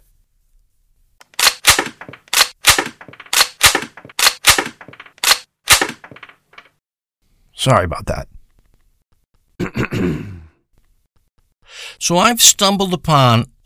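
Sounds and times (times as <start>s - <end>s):
gunshots fired into a floor: 1.3s - 6.3s
speech: 7.7s - 8.3s, 12.1s - 13.6s.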